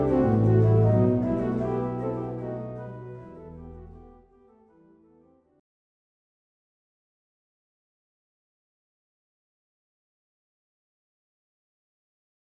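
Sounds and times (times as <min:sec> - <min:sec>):
organ chaconne: 0:00.0 - 0:05.3.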